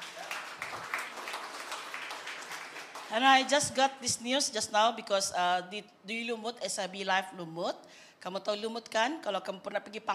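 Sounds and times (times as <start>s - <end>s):
audience clapping: 0.0s - 3.5s
speech: 3.1s - 10.1s.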